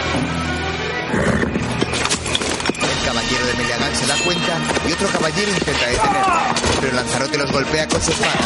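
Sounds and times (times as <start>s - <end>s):
horse whinnying: 1.1s - 1.9s
horse hooves clip-clopping in a forest: 1.4s - 8.4s
speech: 3.3s - 8.4s.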